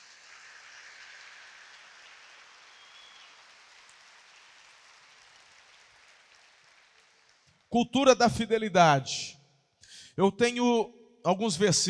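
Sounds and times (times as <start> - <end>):
audience applause: 1.0 - 7.7
speech: 7.7 - 9.4, 10.2 - 11.8.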